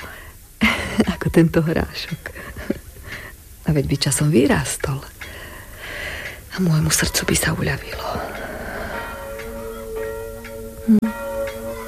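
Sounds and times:
speech: 1.0 - 2.5, 3.7 - 5.2, 6.6 - 8.4
church bells ringing noon: 7.8 - 11.8.

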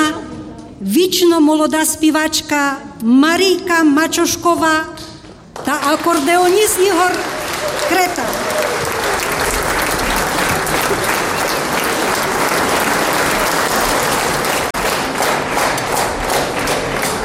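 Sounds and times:
speech: 0.8 - 8.7
audience applause: 5.8 - 17.2.

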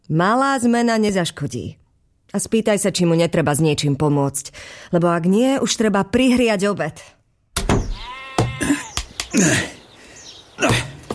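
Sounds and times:
speech: 0.1 - 7.2, 8.6 - 9.8
sharp knocks: 7.6 - 9.3
sheep bleating: 7.9 - 9.0.

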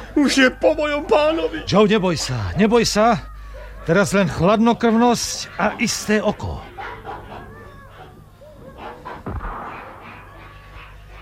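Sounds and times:
speech: 0.2 - 3.3, 3.9 - 6.7
gunshot: 9.2 - 11.2.

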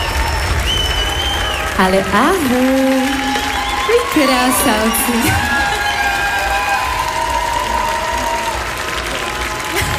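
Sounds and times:
excited audience whistles: 0.0 - 1.8
large audience clapping: 0.0 - 9.9
speech: 1.8 - 3.3, 3.9 - 5.6.

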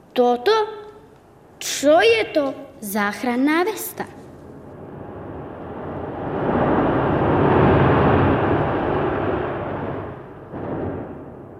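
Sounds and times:
speech: 0.2 - 0.8, 1.6 - 4.2
storm at sea: 4.4 - 11.5.

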